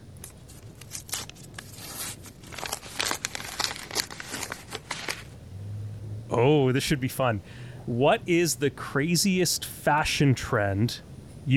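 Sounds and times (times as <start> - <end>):
paper envelopes being handled and opened: 0.2 - 5.4
speech: 6.4 - 11.5.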